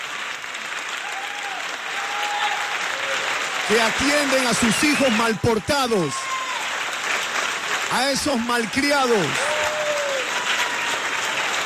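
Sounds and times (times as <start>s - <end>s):
applause: 0.0s - 11.6s
speech: 3.7s - 6.3s, 7.9s - 9.5s.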